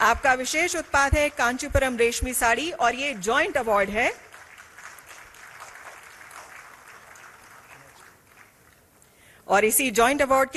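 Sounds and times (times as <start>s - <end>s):
speech: 0.1s - 4.2s, 9.5s - 10.5s
audience applause at award ceremony: 4.2s - 9.0s.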